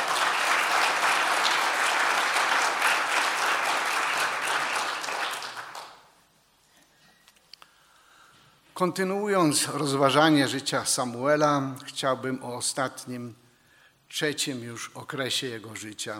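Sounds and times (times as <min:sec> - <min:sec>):
loud dense audience applause: 0:00.0 - 0:06.1
speech: 0:08.8 - 0:13.4, 0:14.1 - 0:16.1.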